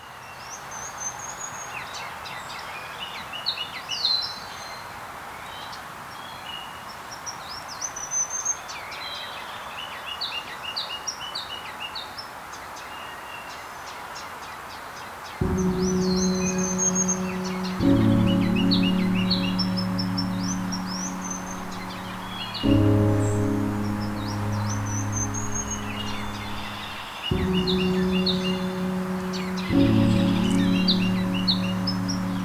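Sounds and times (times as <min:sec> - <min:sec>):
ruby-crowned kinglet song: 0:15.4 - 0:32.4.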